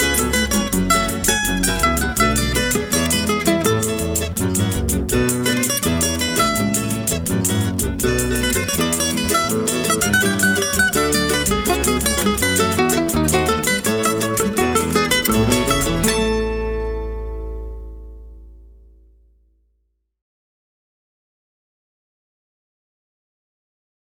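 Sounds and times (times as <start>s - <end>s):
cavaquinho instrumental: 0.0s - 19.0s.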